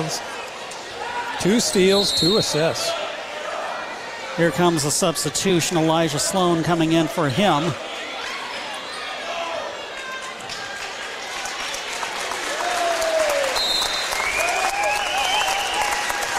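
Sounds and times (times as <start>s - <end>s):
speech: 0.0s - 0.4s, 1.4s - 3.0s, 4.4s - 8.1s
crowd applause at basketball game: 9.6s - 16.3s.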